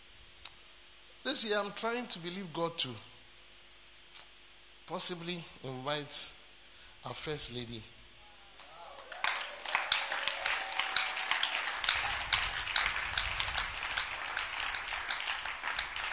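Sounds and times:
speech: 1.2 - 3.1, 4.9 - 6.4, 7.0 - 8.0
audience clapping: 8.6 - 16.1.

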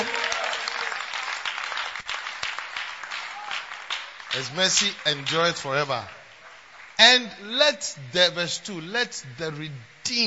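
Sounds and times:
audience clapping: 0.0 - 7.6
speech: 4.4 - 6.2, 7.0 - 10.2.

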